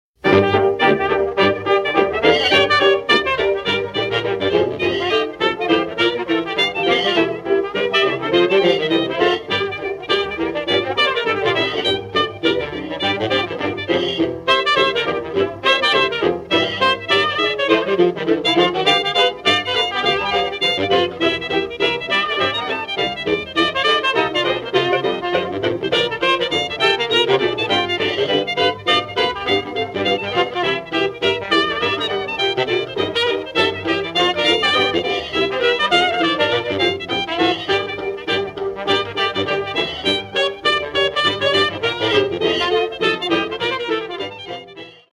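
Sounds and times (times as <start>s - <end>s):
jazz band playing: 0.2s - 45.1s.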